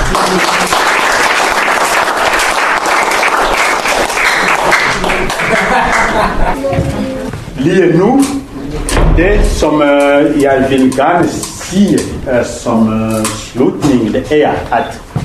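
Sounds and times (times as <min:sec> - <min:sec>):
audience applause: 0:00.0 - 0:06.6
speech: 0:00.2 - 0:00.8, 0:07.6 - 0:15.1
laughter: 0:04.4 - 0:07.3.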